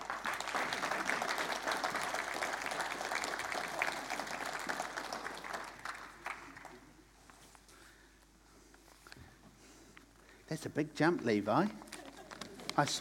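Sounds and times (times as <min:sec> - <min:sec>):
audience applause: 0:00.0 - 0:07.0
speech: 0:10.5 - 0:11.8, 0:12.8 - 0:12.9.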